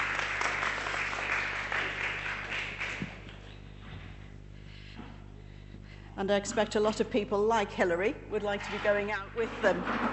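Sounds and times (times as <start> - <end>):
audience applause: 0.0 - 3.4
speech: 6.2 - 10.1.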